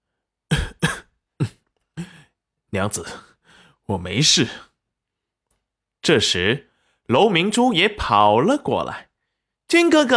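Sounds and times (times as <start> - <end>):
man faking a weak cough, audiobook sound effect: 0.5 - 2.3
speech: 2.7 - 3.3, 3.9 - 4.7, 6.0 - 9.1, 9.7 - 10.1.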